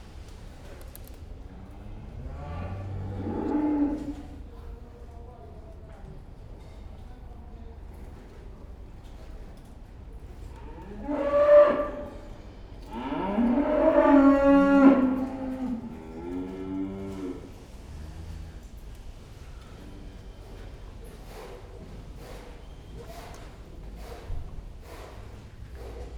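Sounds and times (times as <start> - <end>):
cow mooing in a pen: 2.2 - 4.3, 10.6 - 12.2, 12.8 - 17.6.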